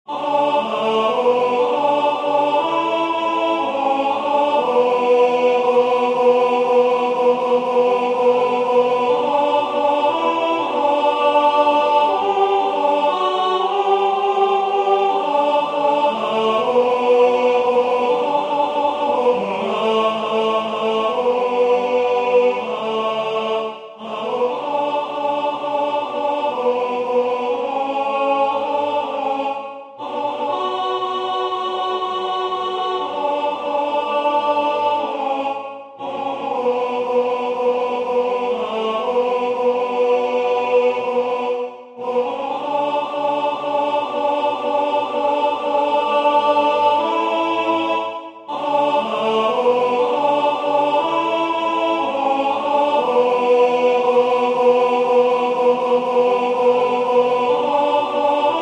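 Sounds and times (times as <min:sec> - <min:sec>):
alto voice singing a communion hymn: 0:00.0 - 0:58.5.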